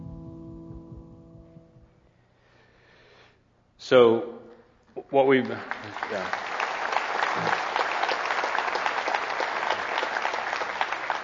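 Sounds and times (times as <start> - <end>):
speech: 3.9 - 4.3, 5.1 - 6.5, 7.4 - 7.6
audience clapping: 5.2 - 11.2.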